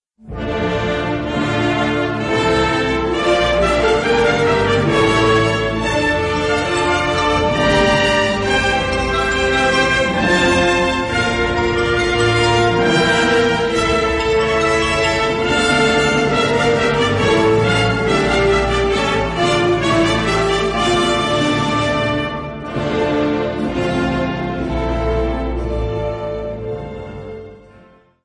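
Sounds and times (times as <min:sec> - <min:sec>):
string section playing: 0:00.2 - 0:28.1.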